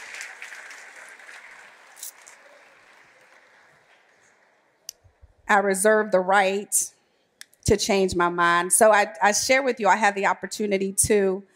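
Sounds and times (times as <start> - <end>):
audience hand clap of praise: 0.0 - 4.7
speech: 5.5 - 7.0, 7.7 - 11.5.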